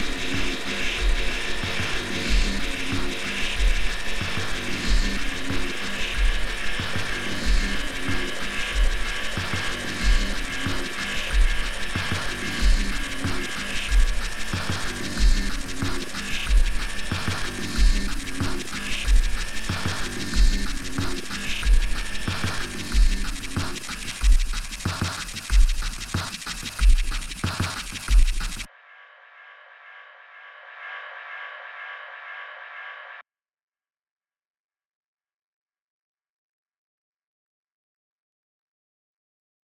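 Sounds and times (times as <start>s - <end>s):
insect-themed music beat: 0.0s - 28.7s.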